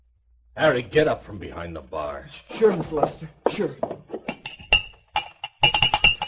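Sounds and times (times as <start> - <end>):
speech: 0.6 - 4.0
whiskey glasses clinking at a bar: 4.1 - 6.2.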